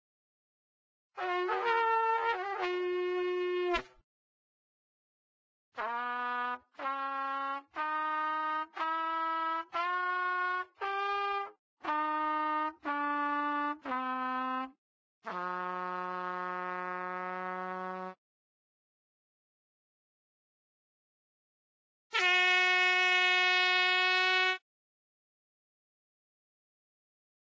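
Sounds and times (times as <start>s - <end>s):
trumpet practice: 1.2s - 3.9s, 5.8s - 18.2s, 22.1s - 24.6s.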